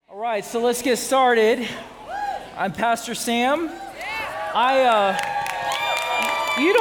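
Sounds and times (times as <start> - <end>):
speech: 0.2 - 1.9, 2.6 - 3.8, 4.5 - 5.3, 6.6 - 6.7
audience cheering: 4.0 - 6.7.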